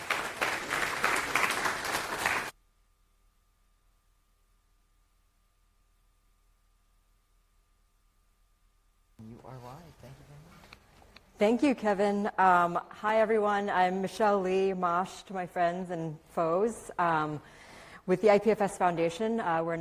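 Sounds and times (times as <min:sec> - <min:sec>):
audience applause: 0:00.0 - 0:02.5
speech: 0:11.4 - 0:19.8.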